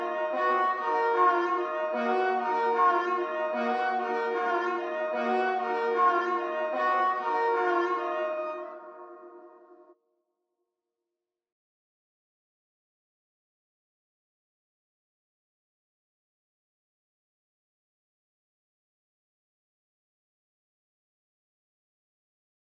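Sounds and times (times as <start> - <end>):
D minor low strings loop at 150 BPM: 0.0 - 9.4.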